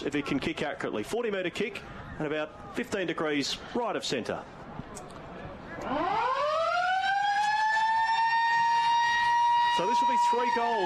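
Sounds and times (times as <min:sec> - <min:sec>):
speech: 0:00.0 - 0:05.0, 0:05.8 - 0:06.2, 0:09.8 - 0:10.8
siren ending the first quarter of a football match: 0:05.8 - 0:10.8.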